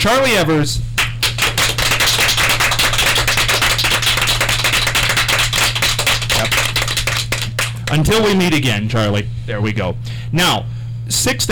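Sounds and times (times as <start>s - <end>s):
speech: 0.0s - 0.9s, 7.9s - 11.5s
low electrical hum: 0.0s - 11.5s
audience applause at a performance venue: 1.0s - 8.3s.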